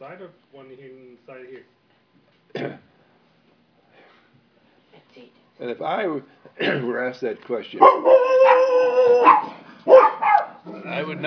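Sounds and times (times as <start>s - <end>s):
speech: 0.0s - 2.9s, 5.2s - 11.2s
dog howling and barking: 7.8s - 10.9s.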